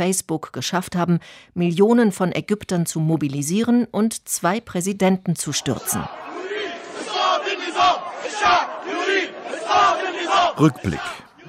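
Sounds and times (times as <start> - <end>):
speech: 0.0 - 6.6, 9.7 - 11.2
crowd of protesters chanting and shouting: 5.4 - 11.4.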